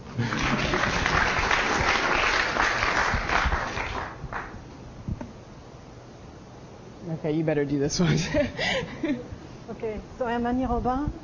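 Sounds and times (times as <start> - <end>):
audience clapping: 0.0 - 4.6
speech: 7.2 - 11.2
laughter: 8.0 - 9.4.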